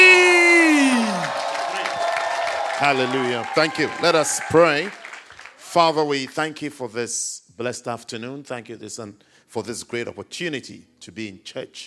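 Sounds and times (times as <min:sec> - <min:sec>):
audience shouting: 0:00.0 - 0:04.9
audience clapping: 0:00.0 - 0:06.0
speech: 0:02.8 - 0:05.0, 0:05.7 - 0:11.8.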